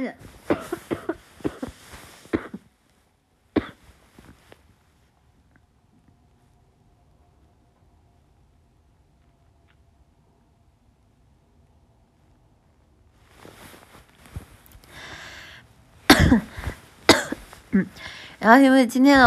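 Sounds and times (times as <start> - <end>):
speech: 0.0 - 0.9, 17.8 - 19.2
person coughing: 0.5 - 2.6, 3.6 - 3.8, 16.1 - 18.2.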